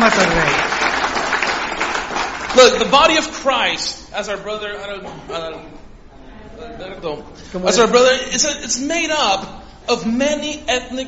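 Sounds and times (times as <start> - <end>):
speech: 0.0 - 0.7, 2.6 - 5.8, 6.6 - 11.0
audience applause: 0.0 - 3.3.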